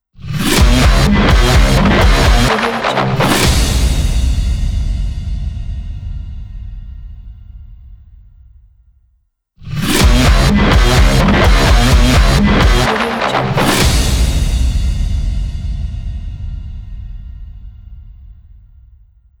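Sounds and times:
metal trailer logo music: 0:00.4 - 0:05.1, 0:09.8 - 0:16.0.

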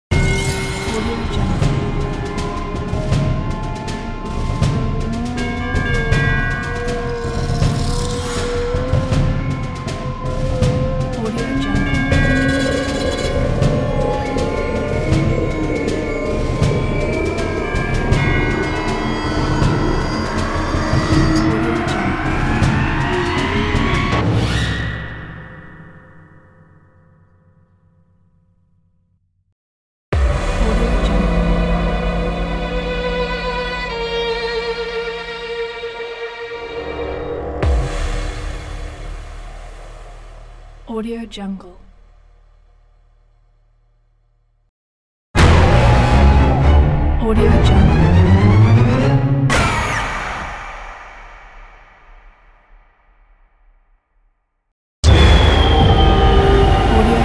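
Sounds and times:
horror movie logo sound: 0:00.1 - 0:27.2, 0:30.2 - 0:34.4, 0:36.0 - 0:40.9, 0:45.4 - 0:53.4, 0:55.0 - 0:57.2.

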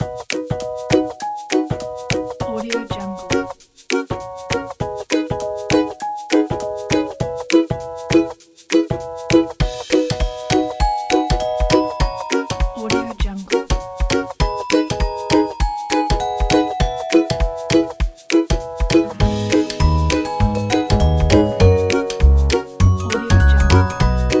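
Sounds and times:
ukulele: 0:00.0 - 0:24.3
happy kids' bells: 0:09.9 - 0:13.3, 0:14.3 - 0:24.3.

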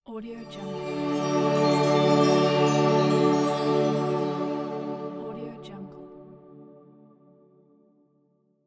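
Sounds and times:
magic aura effect: 0:00.4 - 0:07.0.

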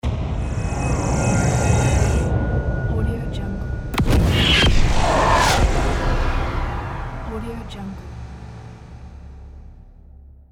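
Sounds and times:
arcane dark magic spell sound: 0:00.0 - 0:10.0.

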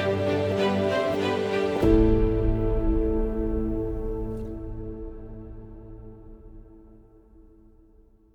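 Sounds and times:
heroic victory music: 0:00.0 - 0:05.8.

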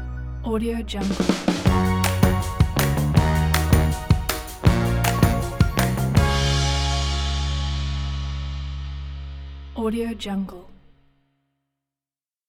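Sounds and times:
upbeat retro pop music: 0:01.0 - 0:08.8.

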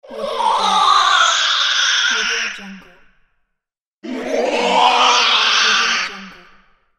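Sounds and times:
evil spirits sounds: 0:00.0 - 0:02.8, 0:04.0 - 0:06.6.

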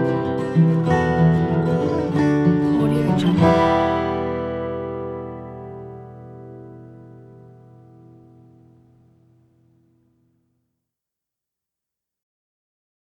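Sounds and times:
soothing acoustic guitar: 0:00.0 - 0:10.4.

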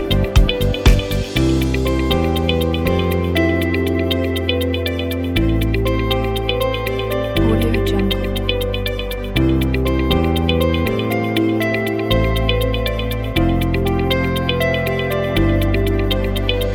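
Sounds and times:
upbeat corporate background music: 0:00.0 - 0:16.7.

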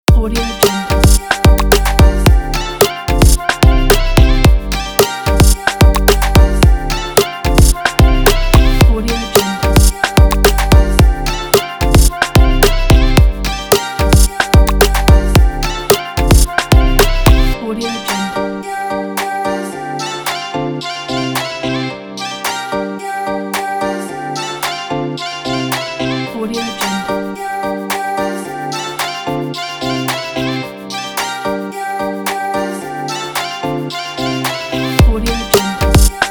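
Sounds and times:
summer pop music loop: 0:00.1 - 0:21.7, 0:23.4 - 0:36.2.

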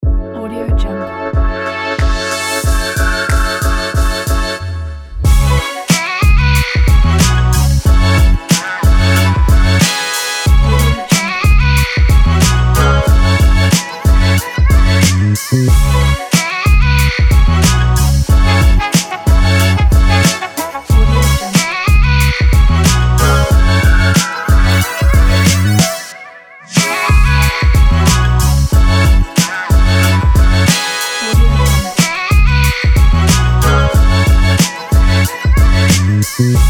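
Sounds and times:
hip hop music: 0:00.0 - 0:36.6.

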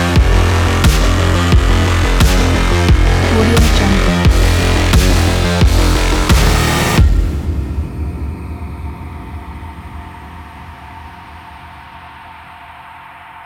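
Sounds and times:
cyberpunk sport electro music: 0:00.0 - 0:09.3.

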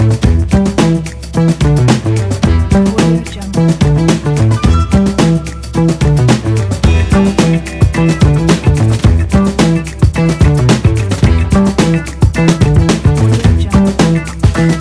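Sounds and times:
quirky jazz funk music: 0:00.0 - 0:14.7.

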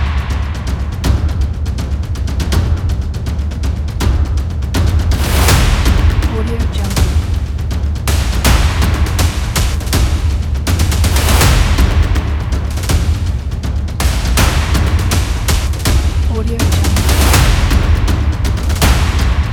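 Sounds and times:
percussion trailer music: 0:00.0 - 0:19.5.

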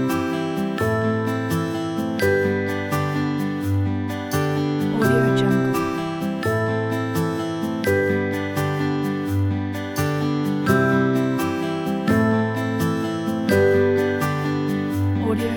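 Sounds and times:
easy light acoustic music: 0:00.0 - 0:15.5.

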